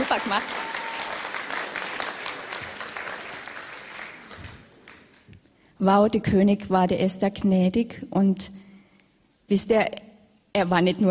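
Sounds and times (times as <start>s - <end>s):
audience applause: 0.0s - 5.3s
speech: 0.1s - 0.7s, 5.8s - 8.6s, 9.5s - 10.0s, 10.6s - 11.0s.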